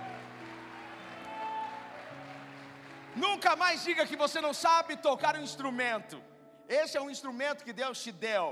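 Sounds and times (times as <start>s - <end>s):
audience applauding: 0.0s - 4.6s
speech: 3.2s - 8.5s.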